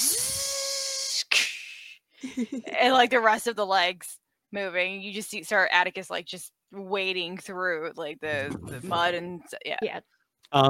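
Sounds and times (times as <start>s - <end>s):
voice imitating hissing steam: 0.0s - 1.8s
speech: 2.3s - 10.6s.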